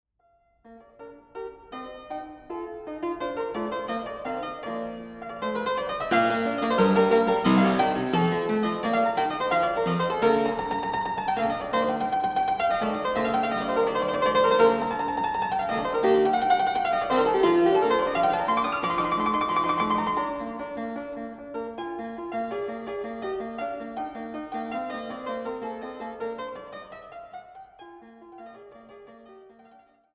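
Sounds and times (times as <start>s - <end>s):
piano sonata in B flat: 0.2s - 30.1s.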